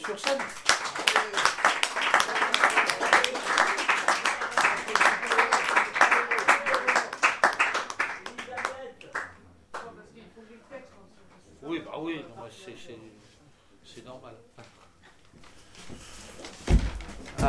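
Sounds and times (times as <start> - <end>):
speech: 0.0 - 0.7, 14.0 - 14.7
audience applause for performer: 0.0 - 9.3.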